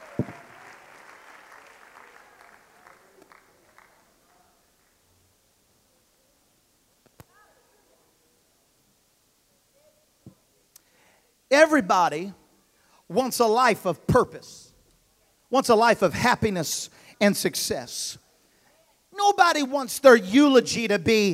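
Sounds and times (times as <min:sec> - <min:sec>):
audience clapping hands: 0:00.0 - 0:05.0
speech: 0:00.2 - 0:00.4, 0:11.5 - 0:12.4, 0:13.1 - 0:14.7, 0:15.5 - 0:18.2, 0:19.2 - 0:21.3.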